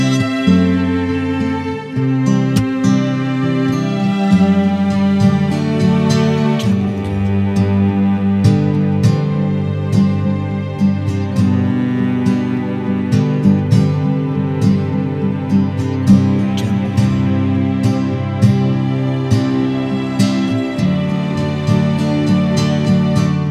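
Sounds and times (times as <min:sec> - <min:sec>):
cello: 0:00.0 - 0:23.4
guitar: 0:00.0 - 0:23.4.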